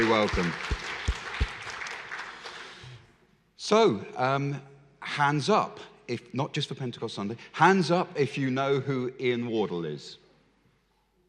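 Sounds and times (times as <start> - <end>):
speech: 0.0 - 0.8, 3.7 - 10.2
church congregation applauding to welcome a family: 0.0 - 3.1.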